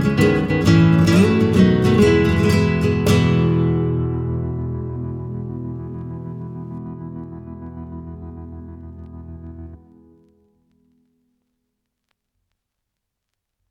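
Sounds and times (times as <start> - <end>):
Spanish guitar playing a Christmas song: 0.0 - 10.2.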